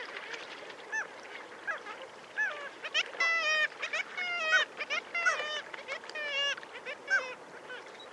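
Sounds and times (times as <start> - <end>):
black-legged kittiwake colony crying: 0.9 - 8.1.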